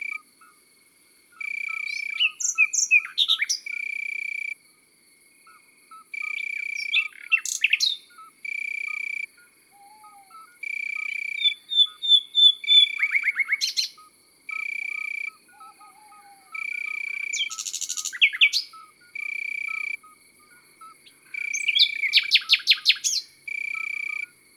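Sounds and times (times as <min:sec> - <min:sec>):
birds singing in the countryside: 0:01.4 - 0:03.7, 0:06.2 - 0:08.3, 0:09.8 - 0:24.3
common nightingale singing in the countryside: 0:01.4 - 0:04.4, 0:05.5 - 0:24.5.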